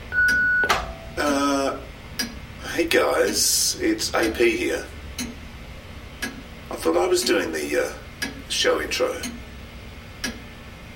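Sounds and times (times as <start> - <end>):
answering machine tone: 0.1 - 1.1
speech: 2.8 - 5.3, 6.8 - 9.4.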